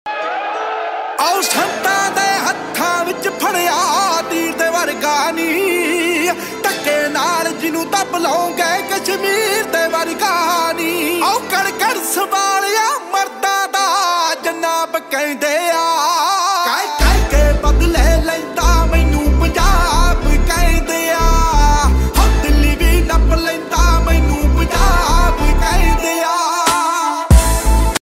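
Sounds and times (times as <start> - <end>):
Punjabi DJ music ringtone: 1.2 - 28.0.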